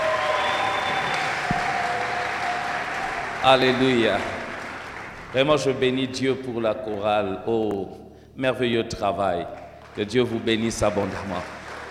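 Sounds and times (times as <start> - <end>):
church congregation applauding: 0.0 - 7.1, 9.6 - 11.9
speech: 3.4 - 4.4, 5.3 - 11.6.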